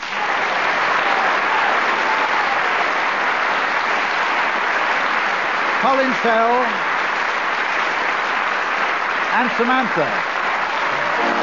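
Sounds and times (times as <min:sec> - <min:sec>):
audience applause: 0:00.0 - 0:11.4
speech: 0:05.8 - 0:06.9, 0:09.4 - 0:10.4.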